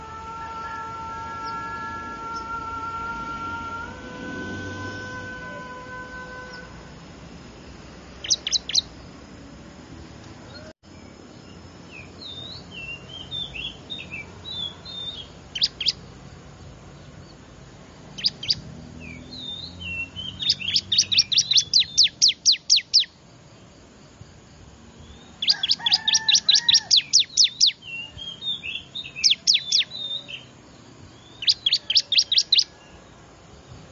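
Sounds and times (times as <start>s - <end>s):
other birds twittering: 0.0s - 6.8s, 7.7s - 9.3s, 10.4s - 23.8s, 24.8s - 33.9s
bar-winged prinia sharp calls: 12.3s - 16.0s, 18.2s - 23.1s, 25.4s - 30.5s, 31.2s - 32.8s.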